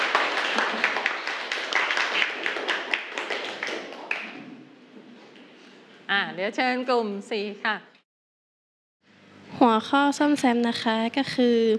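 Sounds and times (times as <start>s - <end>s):
classroom students clapping: 0.0s - 4.5s
speech: 6.4s - 7.9s, 9.6s - 11.7s.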